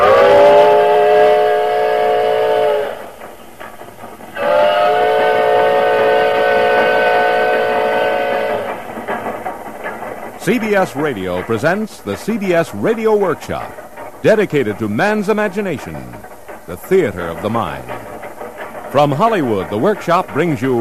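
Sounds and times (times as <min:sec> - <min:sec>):
steam locomotive whistle blasts: 0:00.0 - 0:03.2, 0:04.3 - 0:08.9
steam train rumbling and chugging: 0:00.0 - 0:20.7
speech: 0:10.5 - 0:18.0, 0:18.9 - 0:20.7.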